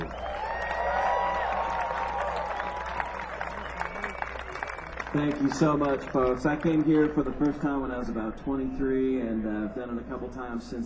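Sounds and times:
round of applause: 0:00.0 - 0:07.8
speech: 0:05.1 - 0:10.8.

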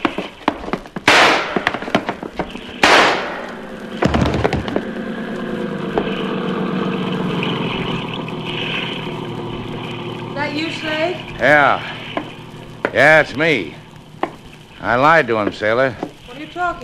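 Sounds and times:
gunshots: 0:01.0 - 0:02.0, 0:02.7 - 0:04.8
rumbling motor drone: 0:01.5 - 0:16.8
speech: 0:11.1 - 0:12.0, 0:13.0 - 0:13.8, 0:14.8 - 0:16.1, 0:16.7 - 0:16.8.

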